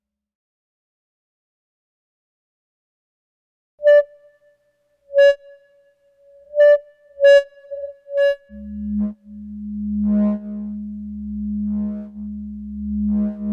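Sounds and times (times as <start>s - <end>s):
audio feedback: 5.1s - 5.6s, 6.5s - 13.5s
electronic beeps and boops: 6.6s - 13.5s.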